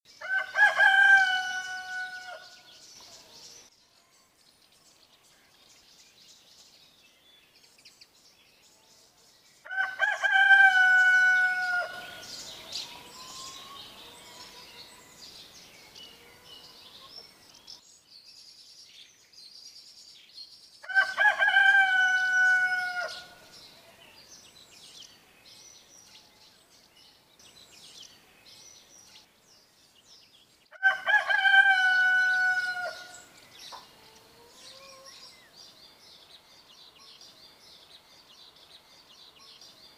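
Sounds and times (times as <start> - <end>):
rooster crowing: 0.2 - 2.6, 9.7 - 15.0, 20.8 - 23.4, 30.7 - 33.2.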